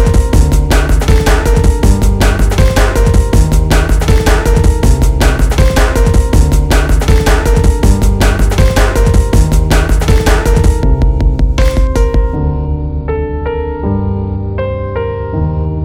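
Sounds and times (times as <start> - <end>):
drum: 0.0 - 12.4
piano: 0.0 - 15.8.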